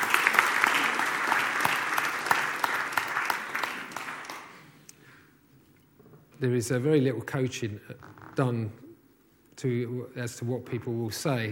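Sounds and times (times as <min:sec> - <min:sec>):
audience applause: 0:00.0 - 0:04.7
speech: 0:06.4 - 0:08.8, 0:09.6 - 0:11.5.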